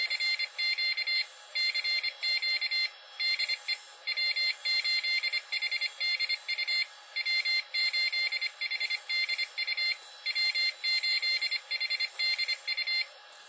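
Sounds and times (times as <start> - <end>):
Morse code call sign at 20 wpm from PC internal speaker: 0.1 - 13.0.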